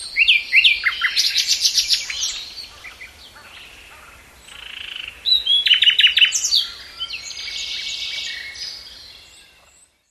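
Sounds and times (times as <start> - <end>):
common nightingale Luscinia megarhynchos song with whistles and rattling flourish: 0.0 - 10.0.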